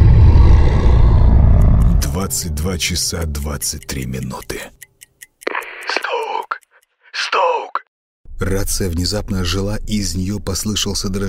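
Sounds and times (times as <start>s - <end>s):
loud prolonged beast roar: 0.0s - 2.6s
speech: 2.3s - 4.9s, 8.5s - 11.2s.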